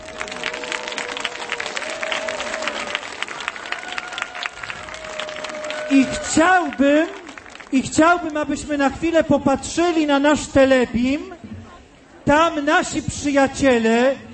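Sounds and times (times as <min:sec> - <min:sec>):
audience applause: 0:00.0 - 0:08.3
speech: 0:05.9 - 0:11.4, 0:12.3 - 0:14.2.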